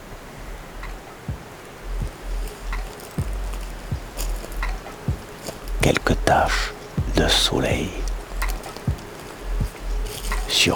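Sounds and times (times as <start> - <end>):
stream noise: 0.0 - 10.7
speech: 5.9 - 8.0, 10.5 - 10.7.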